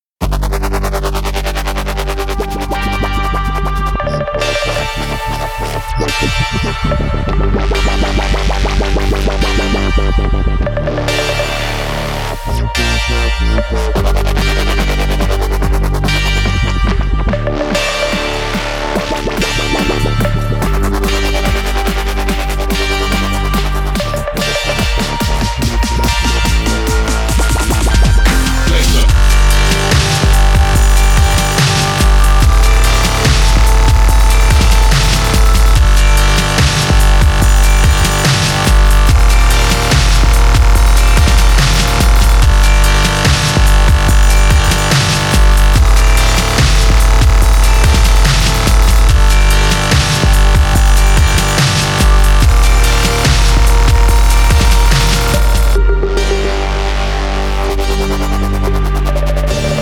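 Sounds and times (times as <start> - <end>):
reggae dubstep rasta music: 0.2 - 59.7.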